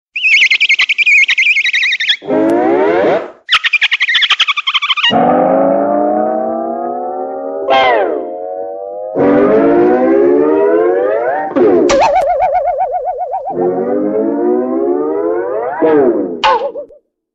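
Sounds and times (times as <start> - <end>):
cartoon sounds: 0.2 - 6.6, 7.3 - 8.5, 9.2 - 17.0.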